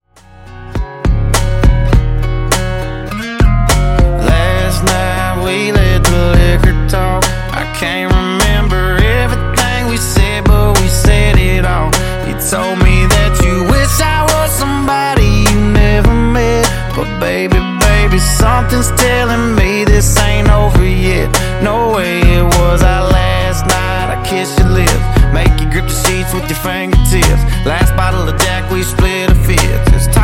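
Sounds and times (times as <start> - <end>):
funk refix bassline at 102 BPM: 0.2 - 30.2.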